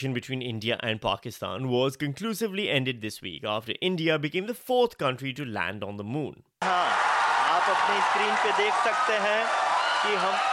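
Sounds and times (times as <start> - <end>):
speech: 0.0 - 10.5
cheers and applause at Mission Control in Bengaluru: 6.6 - 10.5.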